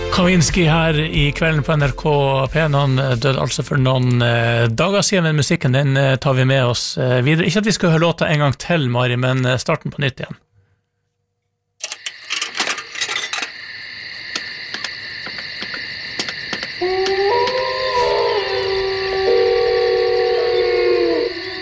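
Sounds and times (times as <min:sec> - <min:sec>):
speech: 0:00.2 - 0:10.5
wolf howl: 0:16.3 - 0:21.6.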